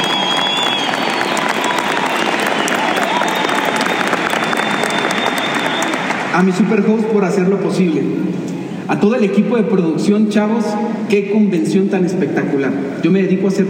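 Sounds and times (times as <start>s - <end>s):
applause: 0.0s - 6.8s
speech: 6.4s - 13.6s.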